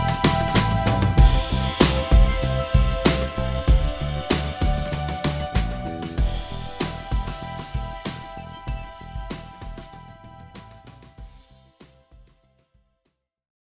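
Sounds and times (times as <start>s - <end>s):
jam bass drums: 0.0s - 12.4s.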